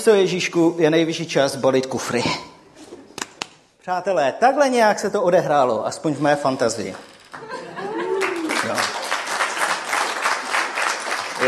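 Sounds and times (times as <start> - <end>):
speech: 0.0 - 2.5, 3.9 - 7.6
audience applause: 6.9 - 11.4
voices and laughter: 7.4 - 8.5.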